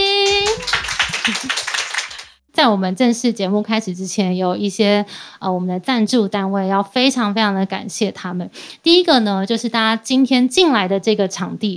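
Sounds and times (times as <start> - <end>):
audience applause welcoming guests: 0.2 - 2.4
speech: 1.3 - 1.6, 2.6 - 11.7.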